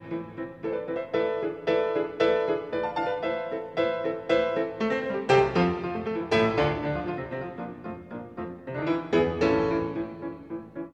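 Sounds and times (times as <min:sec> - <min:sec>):
piano concerto: 0:00.0 - 0:10.9.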